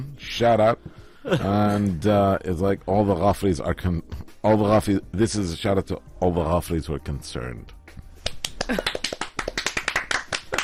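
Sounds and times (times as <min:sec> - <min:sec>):
speech: 0:00.0 - 0:07.8, 0:08.7 - 0:09.0
small group hand clapping on a casual chat show: 0:08.2 - 0:10.6.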